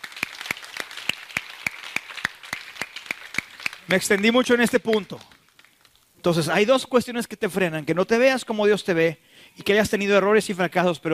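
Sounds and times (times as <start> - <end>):
audience applause: 0.0 - 5.8
speech: 3.9 - 5.3, 6.2 - 11.1.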